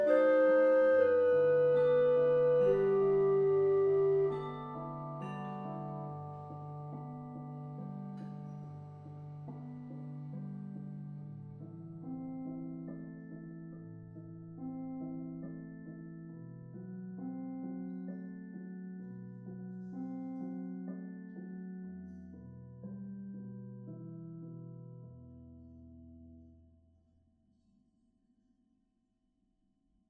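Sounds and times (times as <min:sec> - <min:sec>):
melodrama piece: 0:00.0 - 0:08.3.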